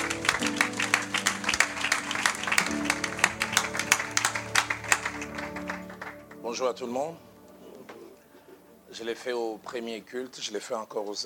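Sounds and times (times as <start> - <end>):
church congregation applauding a pastor: 0.0 - 6.8
speech: 6.6 - 7.3, 9.0 - 11.2.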